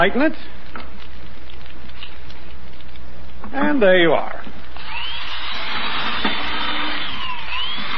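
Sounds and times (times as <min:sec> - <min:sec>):
speech: 0:00.0 - 0:00.7, 0:03.5 - 0:04.6
power drill drilling through a board: 0:04.8 - 0:07.9.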